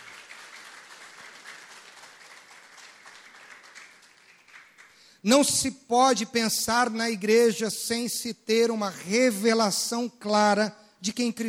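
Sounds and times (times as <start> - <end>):
audience applause: 0.0 - 5.0
speech: 5.2 - 11.4.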